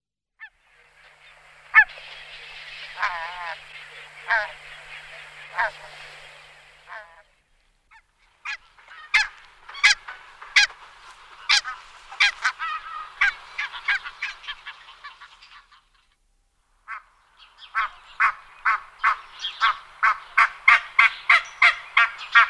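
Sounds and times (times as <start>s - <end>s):
barnacle goose flock calling: 0.4s - 16.0s, 16.9s - 22.4s.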